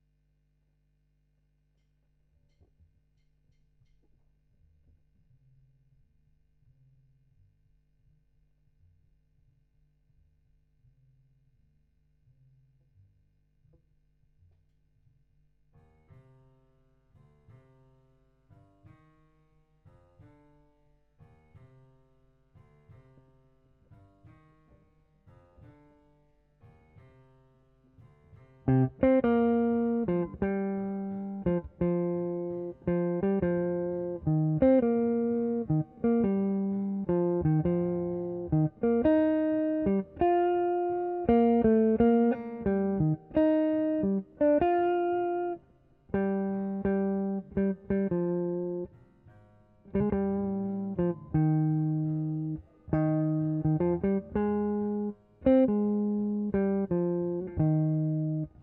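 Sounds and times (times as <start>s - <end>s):
guitar: 28.0s - 58.6s.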